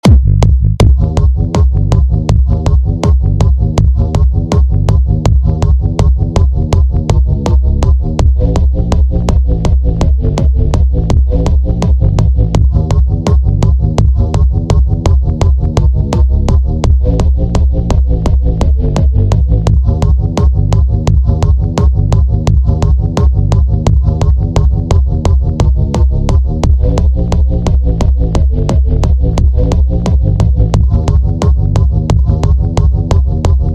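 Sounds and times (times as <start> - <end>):
bass: 0.0 - 33.7.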